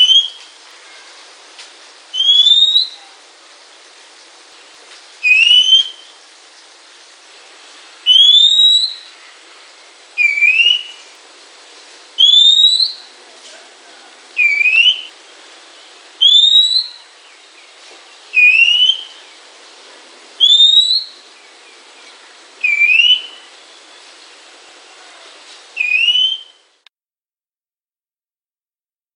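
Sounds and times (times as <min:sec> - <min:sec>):
Oriental magpie-robin singing clear slightly rising whistles: 0:00.0 - 0:00.5, 0:02.1 - 0:03.0, 0:05.2 - 0:06.1, 0:08.1 - 0:09.1, 0:10.2 - 0:11.0, 0:12.2 - 0:13.0, 0:14.4 - 0:15.1, 0:16.2 - 0:17.0, 0:18.3 - 0:19.2, 0:20.4 - 0:21.2, 0:22.6 - 0:23.5, 0:25.8 - 0:26.6.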